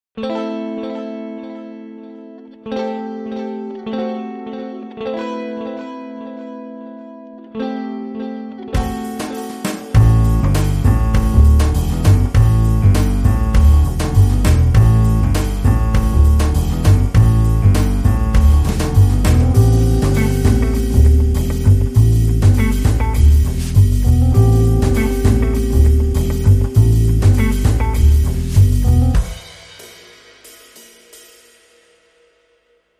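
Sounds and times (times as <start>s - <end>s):
short fuzzy jazzy rhythm: 8.8s - 29.5s.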